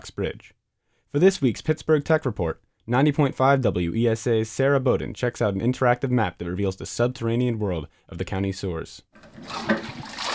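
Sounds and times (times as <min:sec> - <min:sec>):
speech: 0:00.0 - 0:09.9
toilet flushing at an office: 0:09.2 - 0:10.3.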